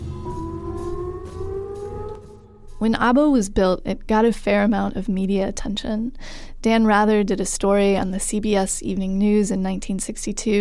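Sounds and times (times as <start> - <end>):
air raid siren: 0.0 - 3.0
low rumble: 0.0 - 3.4
speech: 2.8 - 10.5.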